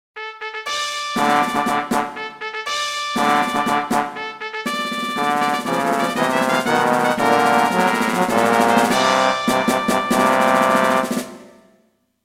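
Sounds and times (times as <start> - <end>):
fanfare: 0.2 - 11.8.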